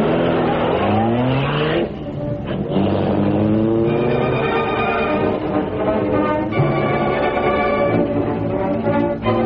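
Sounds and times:
tire squeal: 0.0 - 5.5
car engine roaring and accelerating hard: 0.0 - 9.3.

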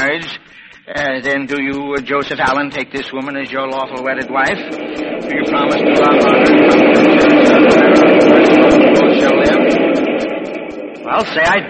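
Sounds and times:
speech: 0.0 - 7.2, 11.1 - 11.6
passing train: 2.5 - 11.6.

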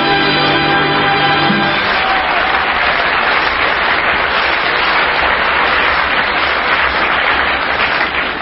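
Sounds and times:
audience applause: 0.1 - 8.4.

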